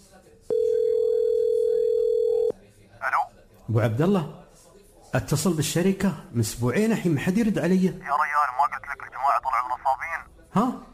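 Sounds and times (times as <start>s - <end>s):
faint noise: 0.0s - 10.9s
telephone tone while placing a call: 0.5s - 2.5s
speech: 3.7s - 4.4s, 5.1s - 8.3s, 10.6s - 10.8s.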